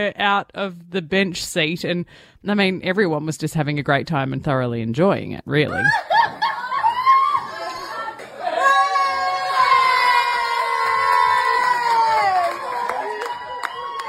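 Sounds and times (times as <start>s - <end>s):
speech: 0.0s - 6.2s
people laughing: 5.7s - 8.7s
restaurant crowd cheering and whooping: 5.7s - 14.0s.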